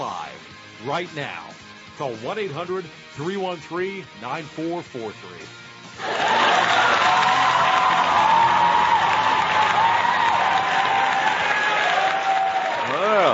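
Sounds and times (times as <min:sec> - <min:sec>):
speech: 0:00.8 - 0:06.3
crowd applause: 0:06.0 - 0:13.3.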